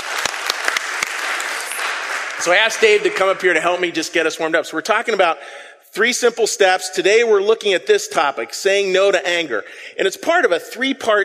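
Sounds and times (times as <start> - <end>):
audience clapping: 0.0 - 4.0
speech: 2.4 - 11.2.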